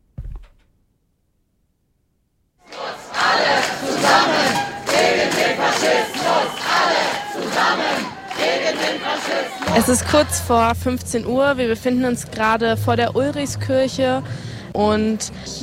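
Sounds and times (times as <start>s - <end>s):
brief thump: 0.0s - 0.7s
counter-demonstration crowd shouting and chanting against an AfD campaign stand: 2.6s - 11.4s
speech: 9.2s - 15.6s.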